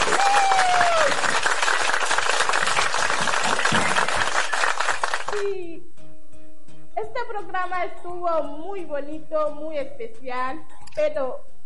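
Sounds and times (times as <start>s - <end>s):
audience applause: 0.0s - 5.5s
speech: 7.6s - 11.5s.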